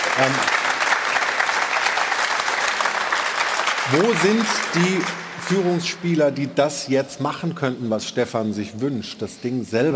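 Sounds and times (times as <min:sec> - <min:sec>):
crowd clapping: 0:00.0 - 0:06.4
speech: 0:00.2 - 0:00.6, 0:03.9 - 0:09.9.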